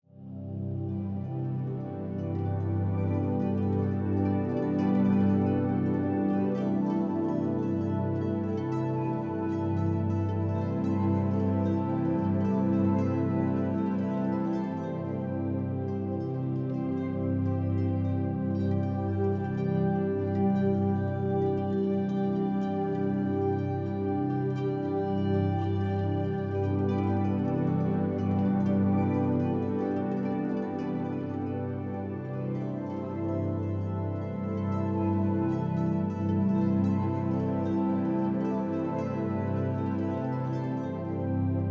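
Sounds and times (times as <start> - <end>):
ambient music: 0.1 - 41.7.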